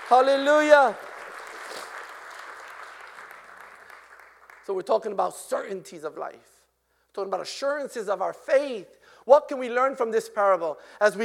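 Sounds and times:
audience hand clapping: 0:00.0 - 0:05.2
speech: 0:00.1 - 0:01.1, 0:04.7 - 0:06.5, 0:07.2 - 0:11.2.

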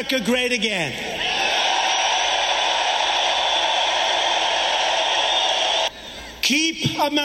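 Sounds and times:
speech: 0:00.0 - 0:01.2, 0:06.5 - 0:07.2
rally crowd cheering: 0:01.1 - 0:06.3.

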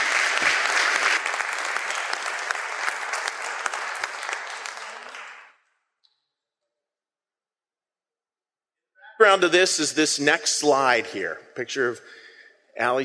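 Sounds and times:
audience applause: 0:00.0 - 0:05.5
speech: 0:09.2 - 0:12.2, 0:12.8 - 0:13.0.

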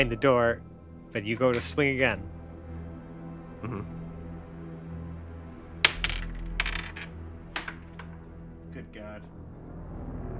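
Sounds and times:
speech: 0:00.0 - 0:02.4, 0:03.6 - 0:04.0
die clattering onto a hard floor: 0:05.8 - 0:08.2.

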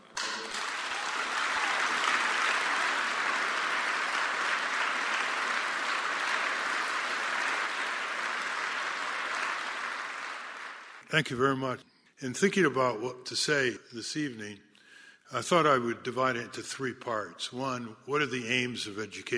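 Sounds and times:
audience applause: 0:00.0 - 0:11.1
speech: 0:11.1 - 0:14.7, 0:15.3 - 0:19.3.

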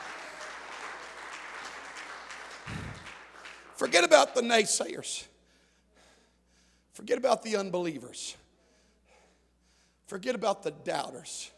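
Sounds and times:
audience clapping hands: 0:00.0 - 0:04.7
speech: 0:03.8 - 0:05.3, 0:07.0 - 0:08.4, 0:10.1 - 0:11.5.

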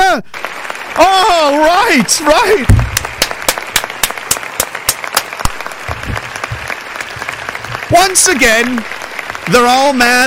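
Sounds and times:
audience applauding: 0:00.0 - 0:10.2
speech: 0:01.0 - 0:02.8, 0:07.9 - 0:10.2
sharp louder claps in a regular rhythm: 0:02.4 - 0:10.2.

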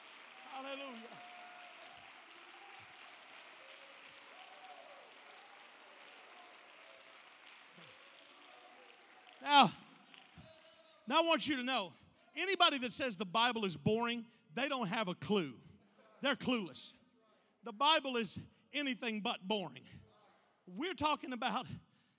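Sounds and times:
audience clapping hands: 0:00.0 - 0:11.0
speech: 0:00.6 - 0:01.3, 0:09.4 - 0:09.8, 0:11.1 - 0:17.0, 0:17.6 - 0:20.0, 0:20.7 - 0:21.8.

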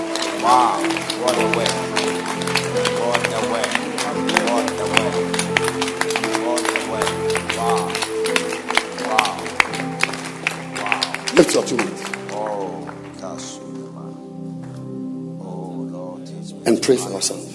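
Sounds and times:
audience clapping hands: 0:00.0 - 0:13.7
speech: 0:00.4 - 0:01.8, 0:11.4 - 0:12.1, 0:16.8 - 0:17.5.

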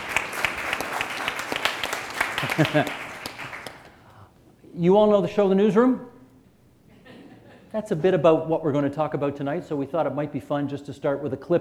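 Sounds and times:
laughter: 0:00.0 - 0:03.8, 0:06.9 - 0:07.9
audience applause at an evening gathering: 0:00.0 - 0:04.0
speech: 0:02.4 - 0:03.0, 0:04.8 - 0:06.1, 0:07.7 - 0:11.6.

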